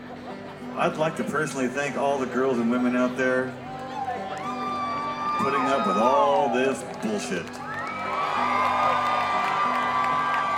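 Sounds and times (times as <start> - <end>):
speech: 0.8 - 3.6, 5.4 - 7.6
audience cheering and whooping: 3.9 - 7.0, 7.6 - 10.5.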